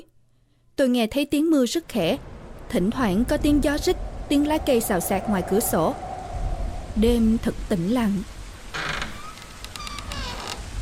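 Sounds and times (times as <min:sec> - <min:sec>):
speech: 0:00.8 - 0:06.0, 0:07.0 - 0:08.4
bed creaking as someone turns over: 0:08.7 - 0:10.7.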